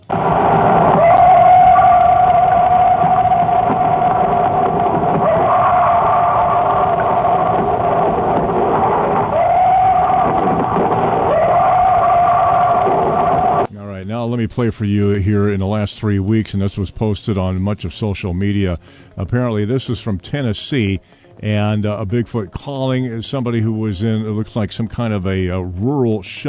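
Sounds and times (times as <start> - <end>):
coyotes howling: 0.0 - 13.7
speech: 14.4 - 26.4.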